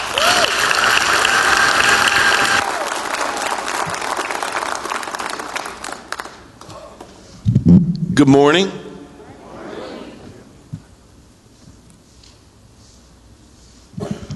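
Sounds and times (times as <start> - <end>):
church audience clapping to welcome a guest reverend: 0.0 - 7.1
speech: 8.2 - 8.8.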